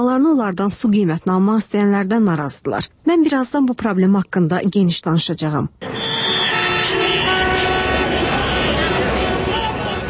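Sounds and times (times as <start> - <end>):
speech: 0.0 - 6.2
car horns honking in a traffic jam on Tbilisi Avenue in Baku: 5.8 - 10.0
dense roar of idling traffic in a jam on Tbilisi Avenue in Baku: 5.8 - 10.0.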